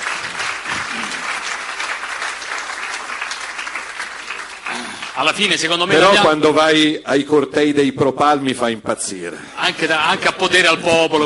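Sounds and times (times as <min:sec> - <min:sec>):
audience applause: 0:00.0 - 0:06.3
speech: 0:05.2 - 0:11.2.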